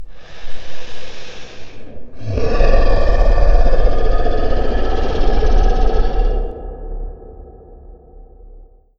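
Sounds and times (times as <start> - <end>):
growling: 2.1 - 8.8.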